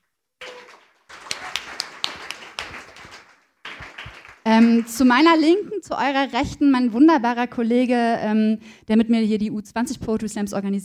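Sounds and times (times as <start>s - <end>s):
audience applause: 0.4s - 5.4s
speech: 4.5s - 10.8s.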